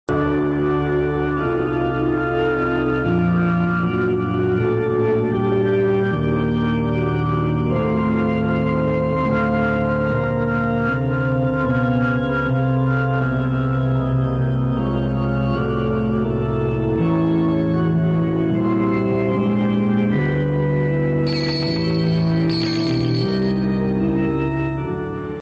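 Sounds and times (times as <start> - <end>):
organ: 0.1 - 25.4.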